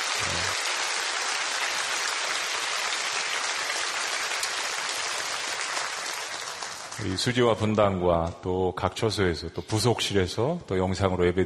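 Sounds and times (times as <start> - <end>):
audience applause: 0.0 - 7.2
speech: 7.0 - 11.4.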